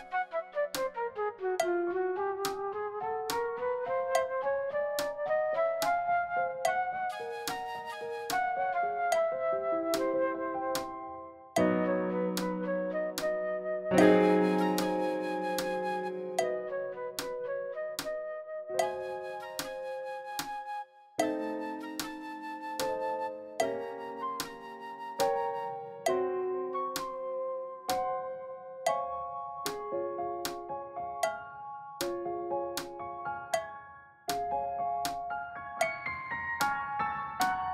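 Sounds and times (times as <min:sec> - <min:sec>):
flute playing fast: 0:00.0 - 0:26.5
piano playing fast: 0:00.0 - 0:37.7.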